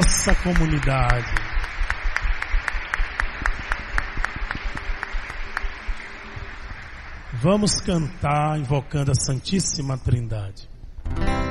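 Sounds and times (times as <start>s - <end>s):
audience applauding: 0.0s - 8.1s
speech: 0.2s - 1.4s, 7.4s - 10.7s.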